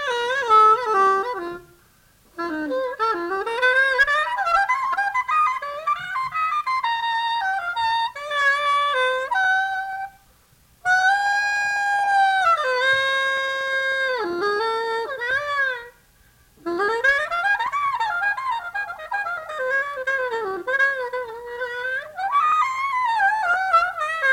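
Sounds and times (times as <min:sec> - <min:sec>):
solo soprano saxophone: 0:00.0 - 0:10.2, 0:10.8 - 0:16.0, 0:16.6 - 0:24.3.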